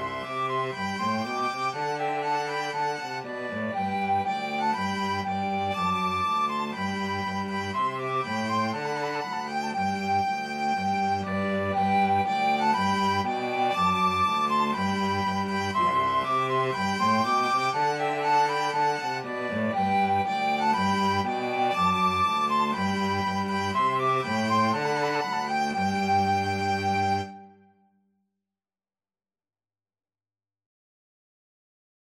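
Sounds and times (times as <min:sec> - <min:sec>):
cello: 0:00.0 - 0:27.6
violin: 0:00.0 - 0:27.7
flute: 0:00.0 - 0:27.9.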